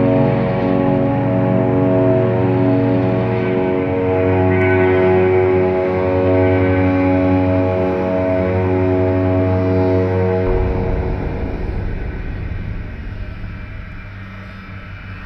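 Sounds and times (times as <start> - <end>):
ambience: 0.0 - 15.2.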